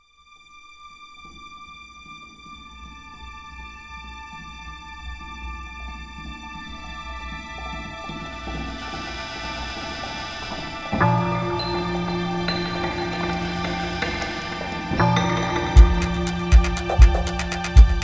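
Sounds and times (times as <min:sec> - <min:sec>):
tension music: 0:06.8 - 0:18.0.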